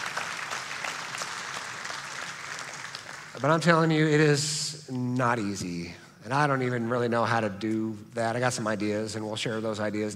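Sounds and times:
audience applauding: 0.0 - 3.8
speech: 3.4 - 10.1.

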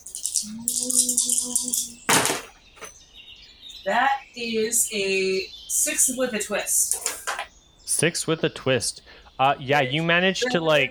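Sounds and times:
several dice rattling and clattering: 0.0 - 2.4
speech: 0.4 - 2.4, 3.8 - 7.1, 8.0 - 10.9.

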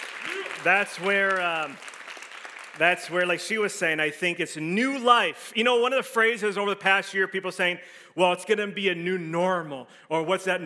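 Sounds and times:
audience clapping: 0.0 - 3.8
speech: 0.6 - 1.9, 2.8 - 10.6.

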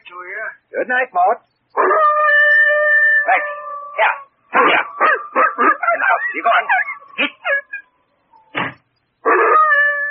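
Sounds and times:
speech: 0.1 - 2.0, 3.3 - 4.9, 6.0 - 7.3
dog whining, yelping and howling: 1.8 - 8.5, 9.2 - 10.0.

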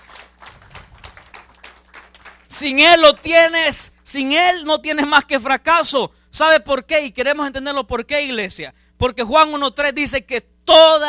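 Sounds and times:
audience applause: 0.0 - 2.5
speech: 2.5 - 11.0.

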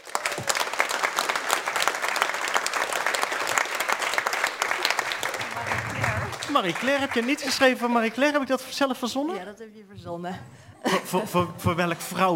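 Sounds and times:
thunderous applause from audience: 0.0 - 8.5
speech: 6.6 - 12.3
laughter: 10.6 - 12.1.

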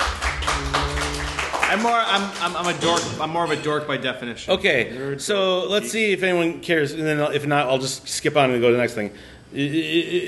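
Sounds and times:
audience clapping hands: 0.0 - 3.1
speech: 1.7 - 10.2.

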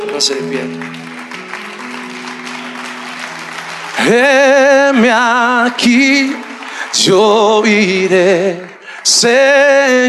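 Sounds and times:
speech: 0.0 - 1.1, 4.0 - 10.0
audience applause: 0.0 - 10.0
person singing a sustained note with vibrato: 3.9 - 10.0.

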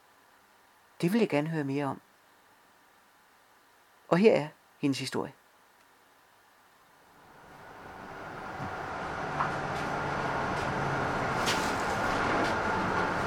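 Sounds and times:
speech: 1.0 - 2.0, 4.1 - 5.4
train approaching Fredensborg Station: 7.2 - 13.2.

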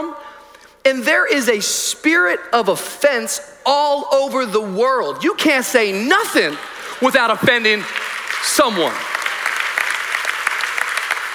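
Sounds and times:
speech: 0.9 - 9.1
audience clapping: 6.4 - 11.3.

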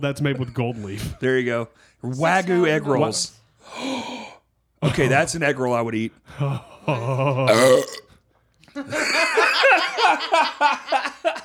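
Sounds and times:
speech: 0.0 - 4.1, 4.8 - 8.0, 8.8 - 11.4
loud burp: 7.5 - 8.1
people laughing: 8.8 - 11.4.

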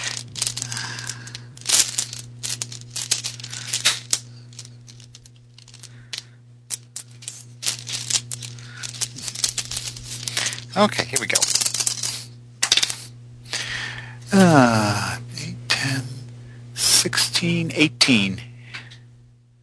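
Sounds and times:
dice rattling as a hand rummages through a bag: 0.0 - 13.1
low steady hum: 0.0 - 17.7
speech: 10.8 - 11.6, 14.5 - 15.1, 17.4 - 18.5.

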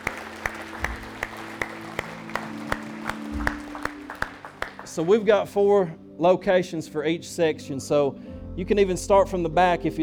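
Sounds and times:
audience clapping in rhythm: 0.0 - 5.5
low sustained musical tones: 0.0 - 10.0
speech: 5.0 - 10.0.

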